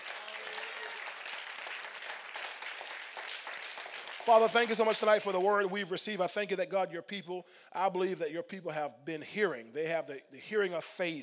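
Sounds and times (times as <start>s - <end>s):
audience applauding in praise: 0.0s - 5.6s
speech: 4.2s - 11.2s.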